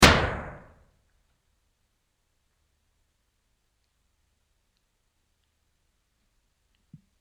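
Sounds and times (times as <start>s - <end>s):
gunshot: 0.0s - 0.8s.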